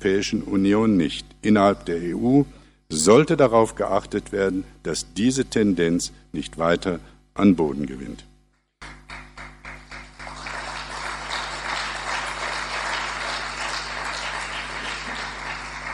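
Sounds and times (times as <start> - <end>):
speech: 0.0 - 8.3
audience applause: 9.1 - 15.9.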